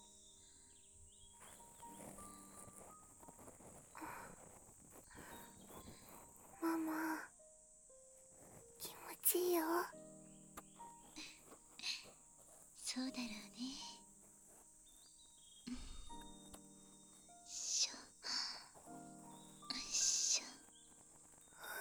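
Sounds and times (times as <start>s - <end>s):
ear cleaning sounds for sleep: 1.4s - 7.0s, 10.6s - 16.4s, 17.5s - 21.7s.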